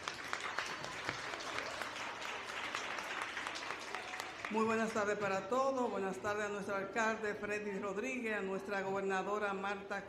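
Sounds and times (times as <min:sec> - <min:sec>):
audience applause: 0:00.0 - 0:04.6
speech: 0:04.5 - 0:10.0.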